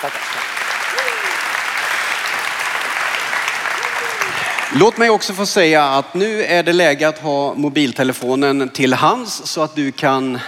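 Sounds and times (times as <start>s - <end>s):
speech: 0.0s - 1.1s, 4.3s - 10.4s
audience applause: 0.0s - 5.7s.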